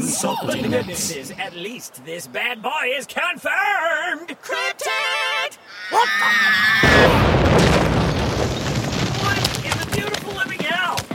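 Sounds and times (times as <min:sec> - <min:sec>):
speech: 0:00.1 - 0:07.8
explosion of a horse in game: 0:06.8 - 0:10.7.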